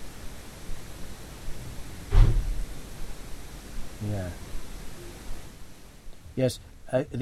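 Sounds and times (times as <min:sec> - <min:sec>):
door: 0:02.1 - 0:02.5
speech: 0:04.0 - 0:04.5, 0:06.4 - 0:07.1.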